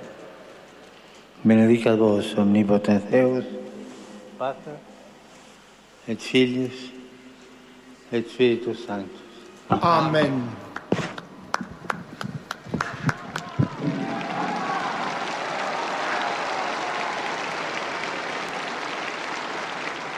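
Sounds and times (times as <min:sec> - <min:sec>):
speech: 0:01.4 - 0:03.7, 0:04.4 - 0:04.9, 0:06.1 - 0:07.0, 0:08.1 - 0:10.6
pilgrims applauding: 0:10.7 - 0:20.1.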